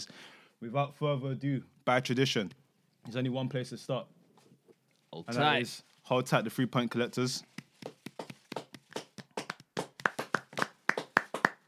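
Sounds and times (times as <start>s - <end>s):
speech: 0.0s - 4.2s, 5.1s - 7.5s
sharp hand claps in an even rhythm: 7.4s - 11.6s.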